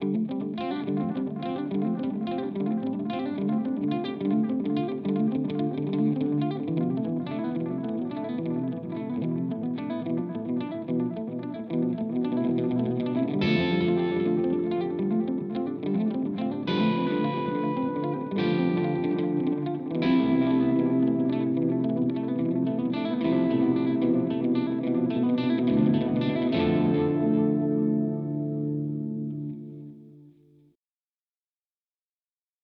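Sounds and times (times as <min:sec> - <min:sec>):
MXR Carbon Copy delay pedal effect: 0:00.0 - 0:30.2.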